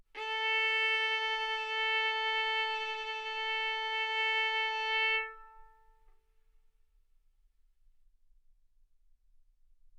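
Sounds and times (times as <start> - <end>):
violin bowed mezzo-forte on the A string, A4 and B4: 0.2 - 6.0.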